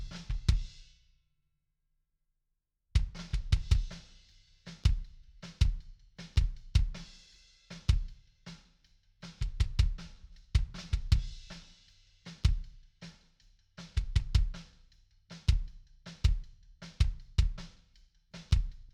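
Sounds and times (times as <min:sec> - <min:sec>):
kick drum: 0:00.0 - 0:00.7, 0:03.0 - 0:04.0, 0:04.8 - 0:07.0, 0:09.4 - 0:11.5, 0:12.4 - 0:12.8, 0:13.9 - 0:14.7, 0:15.5 - 0:17.7, 0:18.5 - 0:18.9.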